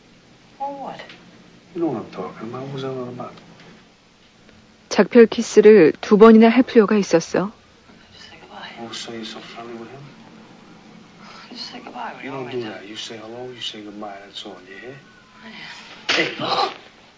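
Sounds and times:
speech: 0.6 - 3.5, 5.0 - 7.6, 8.8 - 10.2, 11.5 - 16.9
slap across the face: 16.1 - 16.9.

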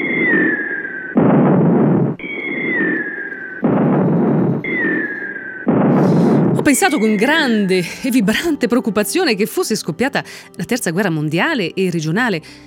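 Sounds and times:
series of explosions: 1.2 - 6.6
speech: 6.7 - 12.6.

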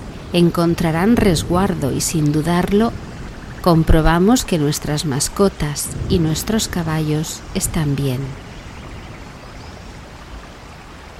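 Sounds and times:
floodwater flowing into the entrance: 0.0 - 11.1
torrential rain: 0.0 - 11.1
speech: 0.3 - 8.4.

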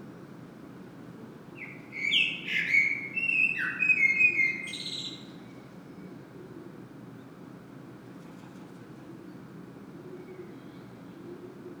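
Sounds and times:
common blackbird singing: 1.6 - 5.1.

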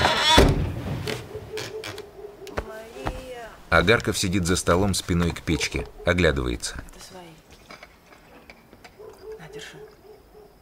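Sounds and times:
door being pulled shut, creaking: 0.0 - 2.1
speech: 3.7 - 7.1.

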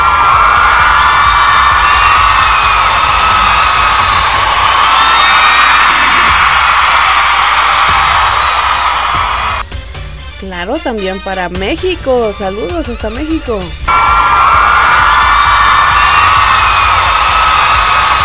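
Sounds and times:
crowd cheering and applauding: 0.0 - 9.6, 13.9 - 18.2
speech: 10.8 - 13.9.

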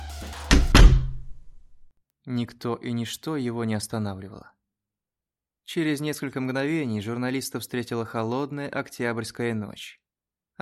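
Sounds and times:
studio inner door being shut firmly: 0.5 - 1.5
speech: 2.3 - 4.6, 5.7 - 10.0.

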